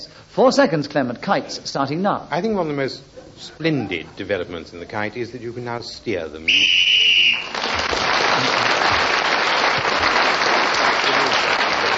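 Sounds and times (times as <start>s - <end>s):
speech: 0.0s - 6.9s
high-pitched whistle blast ending a speaker's turn: 6.5s - 7.6s
sustained applause: 6.8s - 11.9s.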